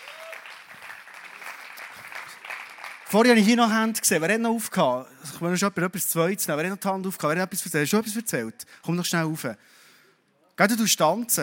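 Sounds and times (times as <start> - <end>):
audience applause: 0.0 - 3.1
speech: 3.1 - 9.8, 10.6 - 11.4.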